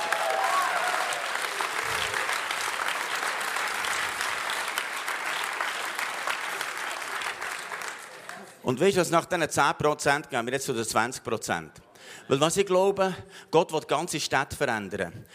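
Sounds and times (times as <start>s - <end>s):
audience applause: 0.0s - 8.6s
speech: 8.7s - 15.3s.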